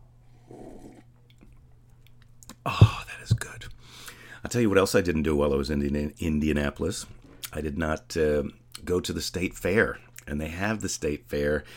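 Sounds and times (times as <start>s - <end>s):
low steady hum: 0.0s - 11.7s
person slurping coffee: 0.4s - 1.1s
speech: 2.6s - 3.4s, 4.5s - 11.7s.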